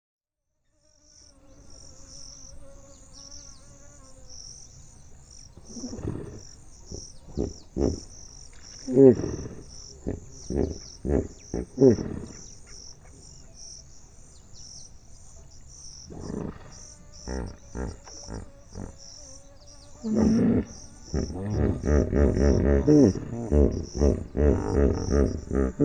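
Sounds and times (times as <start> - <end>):
hippopotamus giving deep loud honking grunts and nasal notes: 5.6 - 13.4, 16.0 - 19.4, 20.0 - 25.8.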